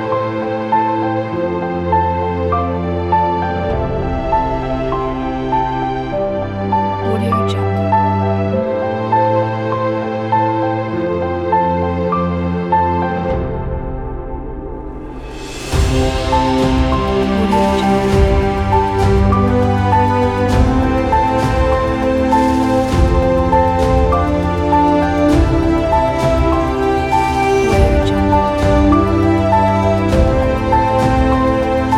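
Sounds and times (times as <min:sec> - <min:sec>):
epic cinematic piano: 0:00.0 - 0:31.9.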